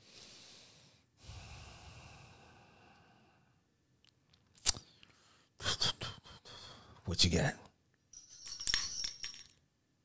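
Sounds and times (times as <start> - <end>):
speech: 7.1 - 7.6
jingling bells sound effect: 8.2 - 9.6.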